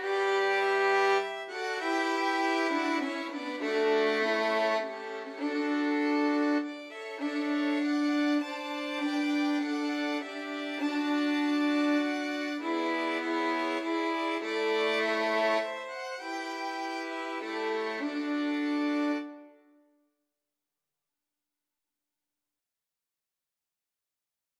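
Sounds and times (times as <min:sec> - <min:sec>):
violin ensemble: 0:00.0 - 0:19.6.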